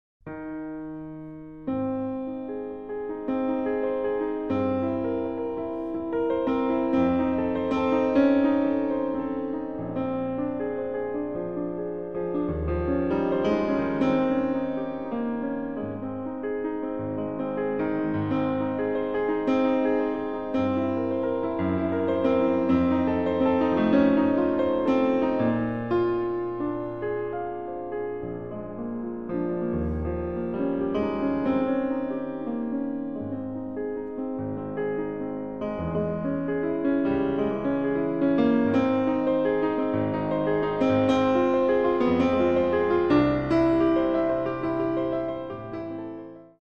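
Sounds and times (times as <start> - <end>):
piano: 0.2 - 46.5.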